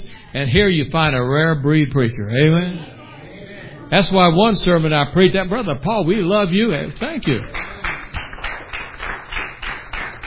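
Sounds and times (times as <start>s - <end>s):
speech: 0.3s - 2.9s, 3.9s - 7.6s
faint applause from a church congregation: 7.4s - 10.2s.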